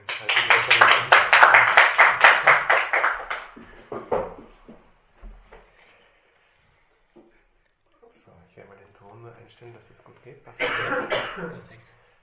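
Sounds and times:
audience applause: 0.0s - 3.7s
speech: 9.5s - 12.2s.

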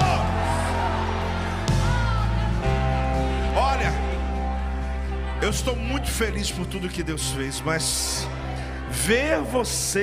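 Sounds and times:
crowd shouting and cheering for joy: 0.0s - 10.0s
speech: 5.5s - 10.0s.

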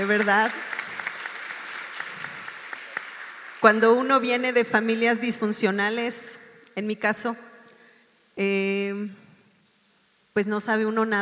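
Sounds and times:
speech: 0.0s - 0.7s, 3.6s - 7.5s, 8.4s - 9.2s, 10.4s - 11.2s
audience applause: 0.0s - 3.7s.

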